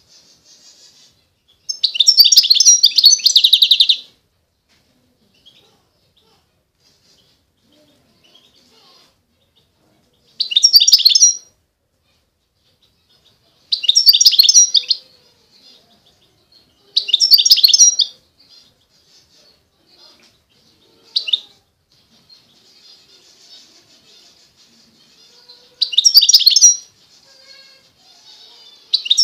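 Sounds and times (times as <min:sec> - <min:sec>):
European goldfinch twittering: 0:01.6 - 0:04.1, 0:10.4 - 0:11.5, 0:13.7 - 0:15.0, 0:17.0 - 0:18.2, 0:21.0 - 0:21.6, 0:25.8 - 0:26.9, 0:28.9 - 0:29.2.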